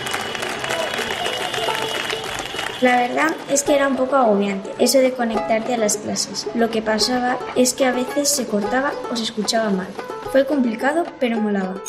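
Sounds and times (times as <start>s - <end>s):
people applauding from balconies: 0.0s - 3.7s
speech: 2.8s - 11.8s.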